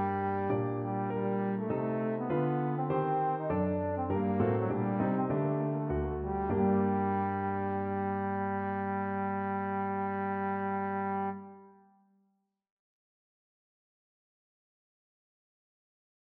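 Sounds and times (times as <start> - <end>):
trombone sonata: 0.0 - 11.9.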